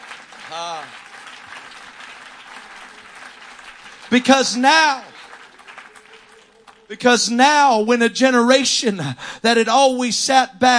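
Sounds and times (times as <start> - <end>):
voices cheering: 0.0 - 7.9
crowd clapping: 0.0 - 8.6
speech: 0.5 - 1.1, 4.1 - 5.1, 6.9 - 10.7.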